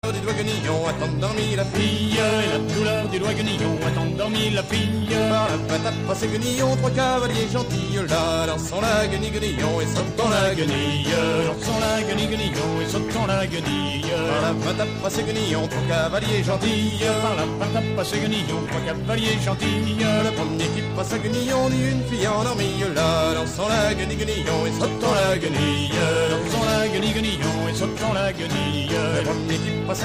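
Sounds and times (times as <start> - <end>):
celtic folk music: 0.0 - 30.0.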